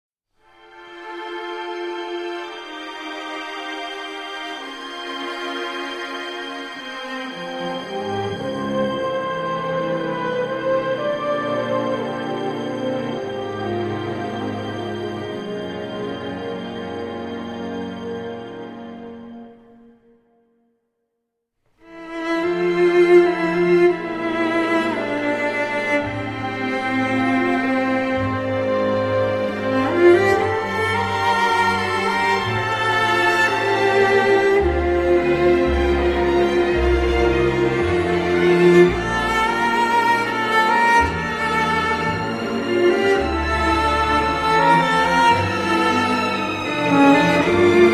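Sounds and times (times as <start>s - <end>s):
cello and orchestra: 0.4s - 19.8s, 21.8s - 47.9s.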